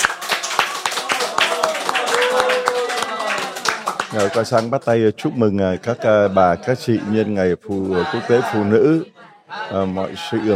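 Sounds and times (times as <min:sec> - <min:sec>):
applause at an International Women's Day gathering: 0:00.0 - 0:04.9
speech: 0:04.1 - 0:10.5.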